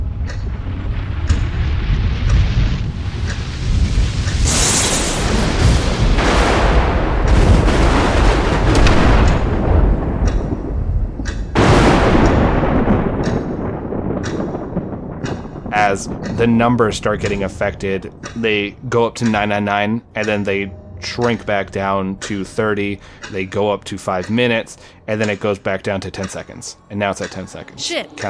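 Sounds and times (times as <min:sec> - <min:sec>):
video game lightning strikes: 0:00.0 - 0:20.0
heavy rumble: 0:00.0 - 0:28.1
speech: 0:15.9 - 0:28.2.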